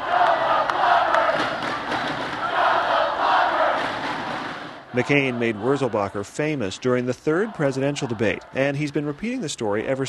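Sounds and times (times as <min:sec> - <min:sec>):
large crowd cheering at a rally: 0:00.0 - 0:10.0
claps: 0:00.2 - 0:02.5
speech: 0:05.0 - 0:10.0.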